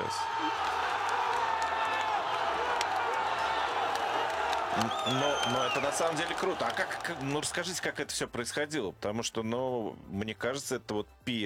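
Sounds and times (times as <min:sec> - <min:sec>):
applause: 0:00.0 - 0:08.0
speech: 0:04.8 - 0:11.4.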